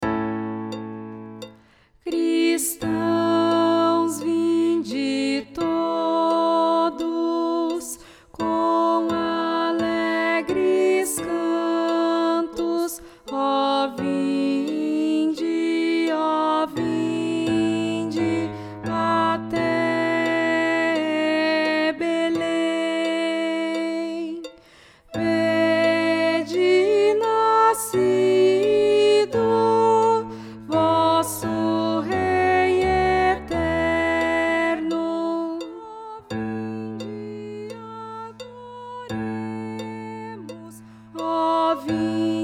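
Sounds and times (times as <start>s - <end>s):
contralto voice: 2.1s - 24.6s, 25.2s - 42.4s.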